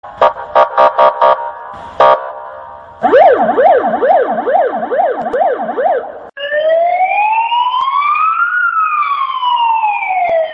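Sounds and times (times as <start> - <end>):
police siren: 0.1 - 10.5.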